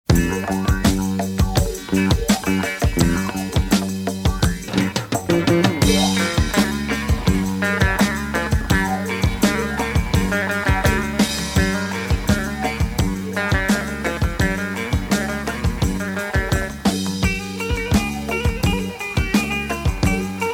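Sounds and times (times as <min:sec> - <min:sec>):
electric saz: 0:00.1 - 0:20.5.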